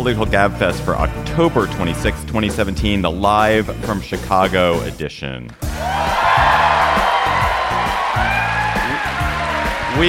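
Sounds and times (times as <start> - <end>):
speech: 0.0 - 6.1
rowdy large crowd cheering at the Merle Reskin Theater: 5.7 - 10.0.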